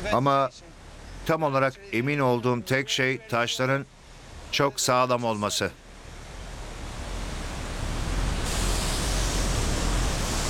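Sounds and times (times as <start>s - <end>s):
speech: 0.0s - 5.8s
waterfall spraying water: 5.9s - 10.4s.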